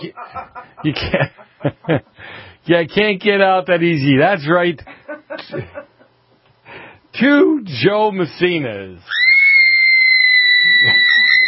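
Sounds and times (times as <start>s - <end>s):
laughter: 0.0s - 2.2s, 4.8s - 6.1s, 10.7s - 11.4s
speech: 0.0s - 5.8s, 7.2s - 9.2s
young girl screaming: 9.1s - 11.4s.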